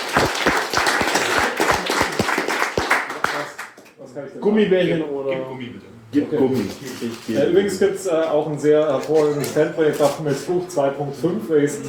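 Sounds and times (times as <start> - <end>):
applause: 0.0 - 4.0
speech: 4.2 - 11.8.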